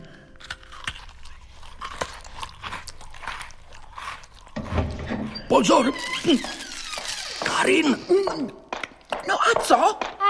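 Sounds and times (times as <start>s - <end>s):
crunching bites into a biscuit: 0.3s - 4.7s
speech: 5.5s - 6.6s, 7.7s - 8.6s, 9.5s - 10.1s.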